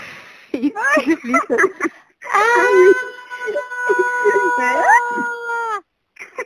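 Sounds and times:
speech: 0.6 - 3.1
person screaming: 2.3 - 5.8.

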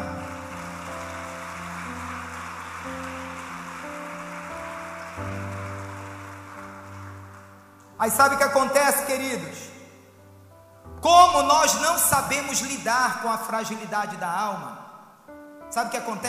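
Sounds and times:
audience applause: 0.0 - 7.8
sustained organ-like chords: 0.0 - 12.8
speech: 8.0 - 9.7, 11.1 - 14.8, 15.7 - 16.2.

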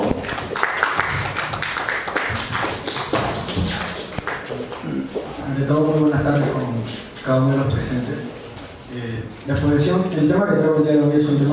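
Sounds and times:
audience applause: 0.0 - 5.1
speech: 5.7 - 6.6, 7.3 - 8.3, 9.0 - 11.5.

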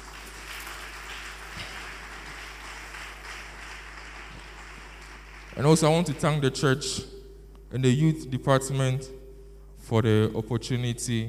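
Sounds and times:
audience clapping: 0.0 - 6.6
speech: 5.6 - 7.1, 7.7 - 9.2, 9.8 - 11.2.

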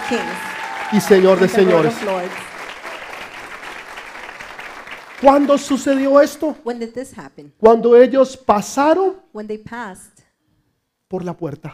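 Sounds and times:
audience applauding loudly: 0.0 - 6.5
speech: 0.1 - 2.5, 5.2 - 10.1, 11.1 - 11.7.

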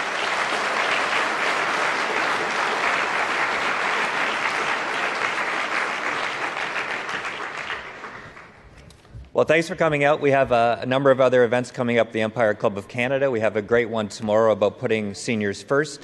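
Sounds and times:
audience applause: 0.0 - 8.8
speech: 9.4 - 16.0.

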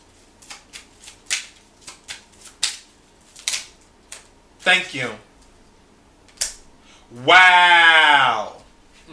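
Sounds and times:
tarot cards being shuffled and drawn during a reading: 0.4 - 4.3
speech: 4.7 - 5.3, 7.1 - 9.1.

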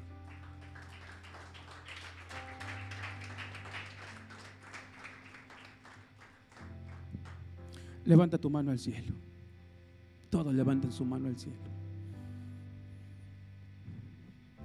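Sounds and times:
audience applause: 0.0 - 7.4
speech: 8.1 - 9.3, 10.4 - 11.8.

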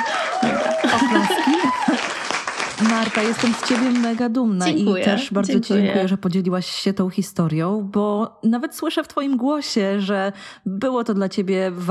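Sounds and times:
person clapping: 0.0 - 4.8
woman talking and chuckling: 0.4 - 2.0, 4.6 - 6.1
speech: 2.8 - 11.9.

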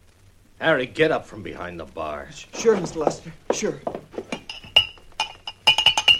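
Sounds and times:
speech: 0.6 - 4.1
whiskey glasses clinking on a bar: 2.6 - 6.1.

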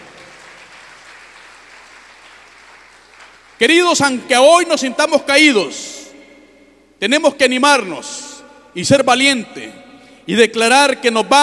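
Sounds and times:
audience applauding: 0.0 - 3.6
speech: 3.6 - 6.0, 7.0 - 11.4.

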